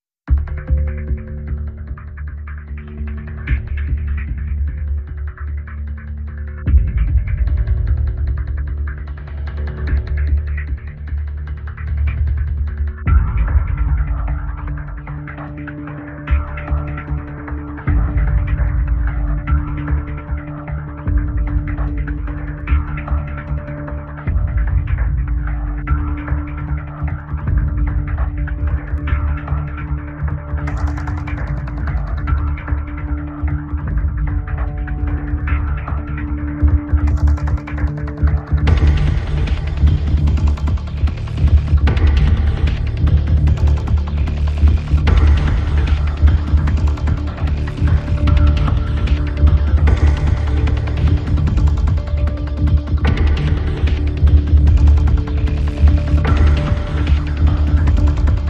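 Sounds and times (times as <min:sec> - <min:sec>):
percussion: 0:00.0 - 0:58.4
pulsing synth: 0:00.4 - 0:58.4.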